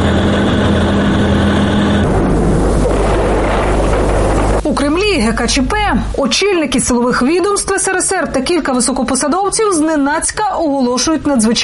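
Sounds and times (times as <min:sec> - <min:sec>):
tanks driving through the streets of Moscow in August 1991: 0:00.0 - 0:06.1
speech: 0:05.3 - 0:11.6.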